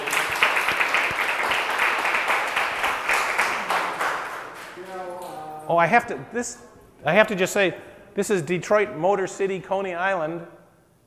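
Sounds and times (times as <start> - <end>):
audience applause: 0.0 - 5.4
speech: 5.7 - 10.6.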